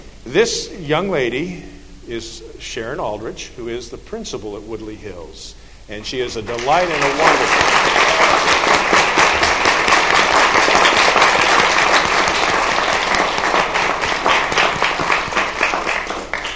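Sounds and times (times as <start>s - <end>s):
speech: 0.2s - 8.8s
audience applause for introduced principal: 6.5s - 16.5s.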